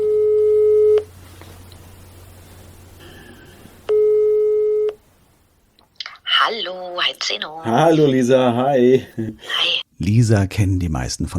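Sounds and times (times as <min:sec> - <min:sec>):
telephone ringing tone over a quiet line: 0:00.0 - 0:01.1, 0:03.9 - 0:05.0
speech: 0:07.2 - 0:11.3.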